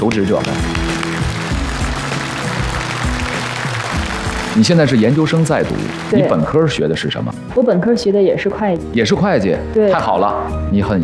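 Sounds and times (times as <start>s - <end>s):
speech: 0.0s - 0.8s, 4.6s - 11.0s
audience applause: 0.0s - 7.0s
music playing: 0.0s - 11.0s.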